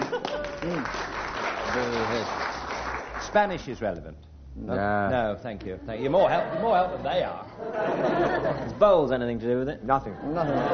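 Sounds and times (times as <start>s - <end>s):
laughter: 0.0s - 0.9s, 6.1s - 9.1s, 10.0s - 10.7s
audience applause: 0.0s - 3.5s
speech: 3.3s - 10.7s.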